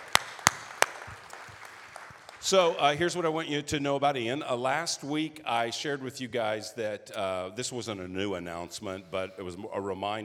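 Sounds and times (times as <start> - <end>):
scattered hand claps from an audience: 0.0 - 2.8
speech: 2.4 - 10.2.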